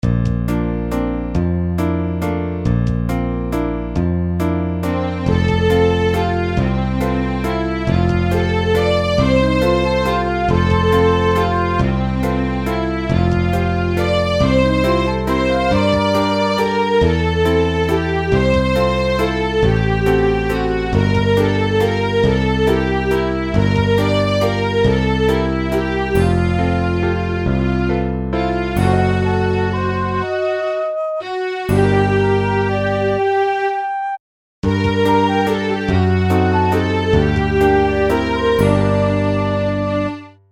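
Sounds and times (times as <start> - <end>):
waltz music: 0.0 - 40.4.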